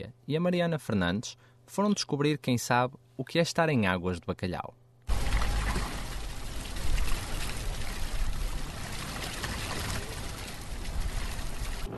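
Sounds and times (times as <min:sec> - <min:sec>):
speech: 0:00.0 - 0:04.8
water flowing from a public fountain: 0:05.1 - 0:11.9.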